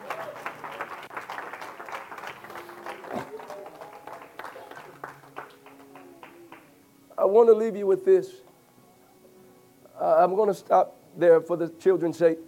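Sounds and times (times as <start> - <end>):
audience hand clapping: 0.0 - 6.8
speech: 7.3 - 8.5, 10.1 - 12.4.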